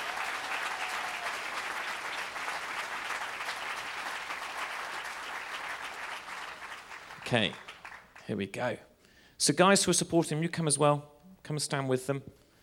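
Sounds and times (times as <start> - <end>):
audience applause: 0.0 - 8.2
speech: 7.3 - 7.7, 8.3 - 12.4.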